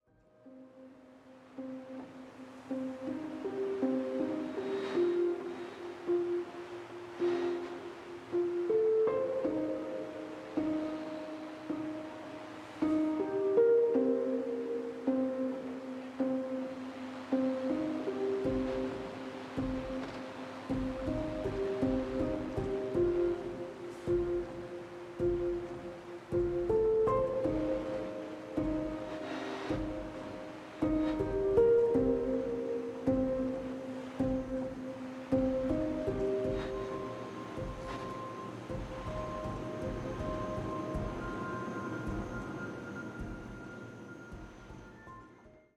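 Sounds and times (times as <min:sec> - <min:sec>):
five pianos playing: 0:01.6 - 0:43.7.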